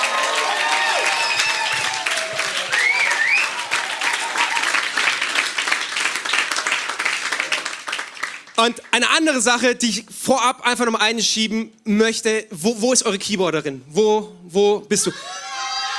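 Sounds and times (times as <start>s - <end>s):
audience applauding: 0.0s - 9.0s, 15.4s - 15.9s
speech: 8.6s - 15.4s.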